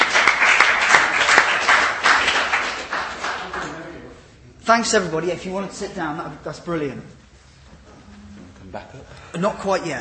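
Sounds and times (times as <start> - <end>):
round of applause: 0.0 - 3.9
speech: 4.7 - 7.2, 8.7 - 9.9.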